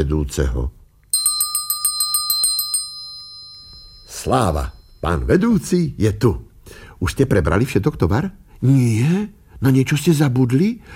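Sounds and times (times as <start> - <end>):
speech: 0.0 - 0.8, 4.2 - 10.9
small hand bell ringing: 1.1 - 5.3.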